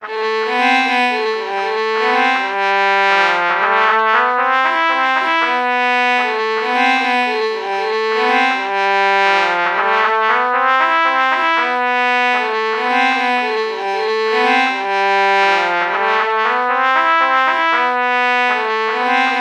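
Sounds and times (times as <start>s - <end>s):
low trumpet violin melody morph: 0.0s - 19.4s.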